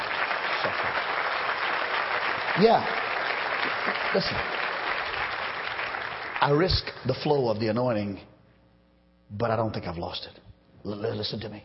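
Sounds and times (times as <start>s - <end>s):
audience applause: 0.0s - 6.9s
speech: 2.6s - 3.0s, 3.6s - 4.6s, 6.4s - 8.3s, 9.3s - 11.6s.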